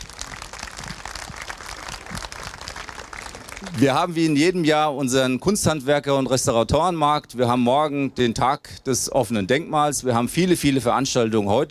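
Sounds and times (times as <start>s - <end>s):
audience applause: 0.0s - 4.1s
speech: 3.6s - 11.6s.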